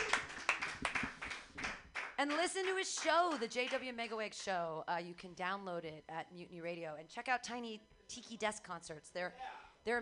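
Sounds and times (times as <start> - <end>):
hand clapping: 0.0 - 3.9
speech: 2.2 - 10.0.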